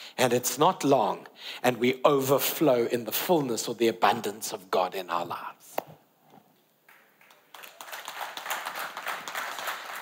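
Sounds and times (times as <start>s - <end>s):
speech: 0.2s - 5.9s
audience clapping during a talk about God: 6.8s - 10.0s.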